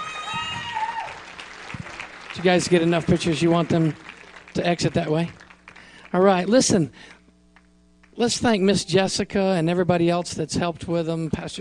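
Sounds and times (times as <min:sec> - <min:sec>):
cheering voices: 0:00.0 - 0:02.0
audience clapping: 0:00.0 - 0:06.8, 0:07.5 - 0:08.2
speech: 0:02.4 - 0:05.4, 0:06.1 - 0:07.2, 0:08.2 - 0:11.5.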